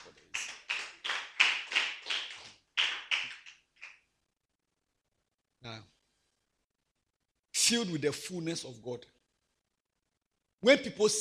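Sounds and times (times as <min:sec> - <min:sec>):
audience clapping: 0:00.0 - 0:04.1
speech: 0:07.7 - 0:09.2, 0:10.6 - 0:11.1.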